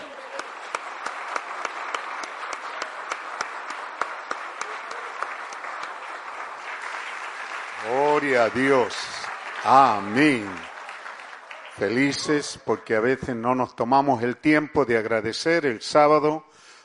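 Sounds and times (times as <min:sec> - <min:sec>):
audience applause: 0:00.0 - 0:13.1
speech: 0:08.2 - 0:10.7, 0:11.8 - 0:16.6.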